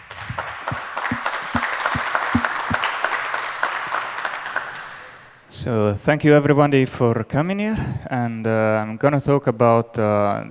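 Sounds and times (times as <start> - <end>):
audience applause: 0.0 - 5.4
speech: 5.6 - 10.4.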